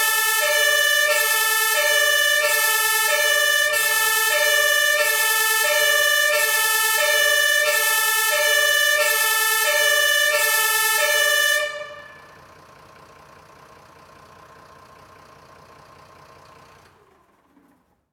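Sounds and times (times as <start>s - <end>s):
long Martinshorn siren: 0.0s - 12.4s.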